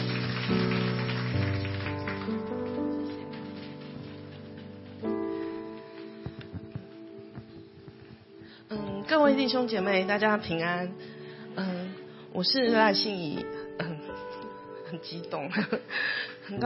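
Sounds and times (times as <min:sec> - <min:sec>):
audience clapping: 0:00.0 - 0:05.2
speech: 0:09.1 - 0:11.8, 0:12.4 - 0:13.5, 0:14.9 - 0:16.6.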